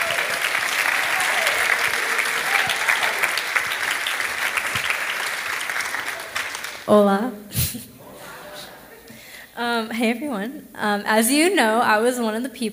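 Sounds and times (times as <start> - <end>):
audience applause: 0.0 - 6.9
speech: 6.9 - 7.9, 9.8 - 12.7
laughter: 7.6 - 9.1.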